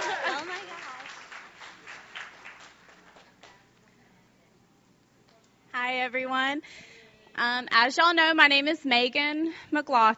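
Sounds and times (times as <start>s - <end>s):
audience applause: 0.0s - 3.5s
speech: 5.9s - 10.1s.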